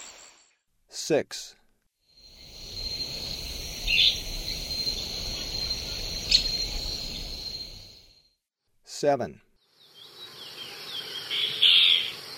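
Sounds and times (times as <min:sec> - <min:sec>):
White-browed Antbird in the Eastern Lowlands of South America: 0:02.2 - 0:07.9, 0:09.8 - 0:12.3.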